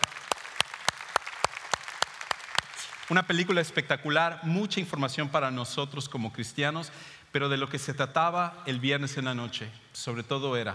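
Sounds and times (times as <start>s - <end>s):
applause: 0.0s - 3.5s
speech: 3.1s - 10.7s.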